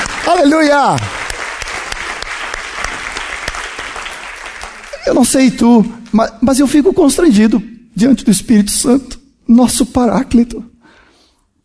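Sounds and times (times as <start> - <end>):
crowd clapping: 0.0 - 6.2
speech: 0.3 - 1.2, 5.0 - 10.7.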